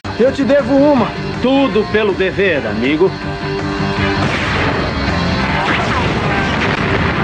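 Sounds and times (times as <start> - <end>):
speech: 0.2 - 4.4
weapon blasts from the 1990s Mega Man animated series: 5.5 - 7.1.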